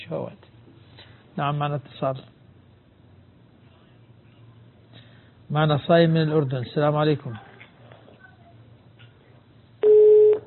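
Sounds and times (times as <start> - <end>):
speech: 0.1 - 0.5, 1.4 - 2.4, 5.5 - 7.5
electronic beep of a dropped phone call: 9.8 - 10.4.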